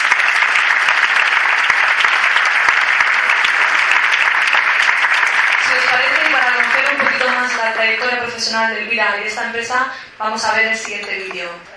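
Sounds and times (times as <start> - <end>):
loud audience applause: 0.0 - 8.2
speech: 7.8 - 11.7.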